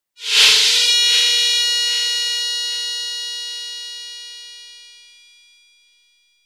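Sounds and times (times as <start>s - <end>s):
dub siren: 0.6s - 4.6s.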